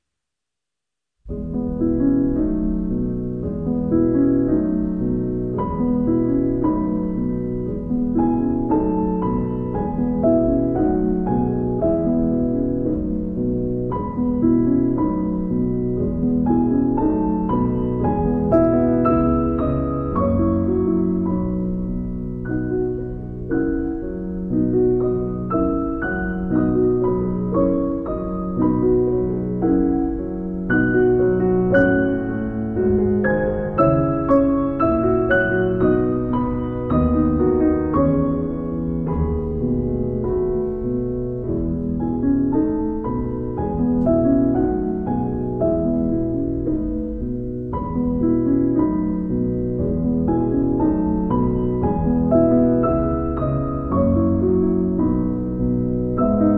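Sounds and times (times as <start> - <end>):
piano lullaby: 1.3 - 56.5.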